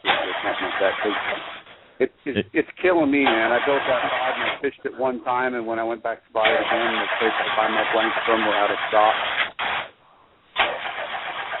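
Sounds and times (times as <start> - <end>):
car engine being started: 0.0 - 1.7, 3.2 - 4.6, 6.4 - 9.9, 10.6 - 11.5
speech: 0.8 - 9.4.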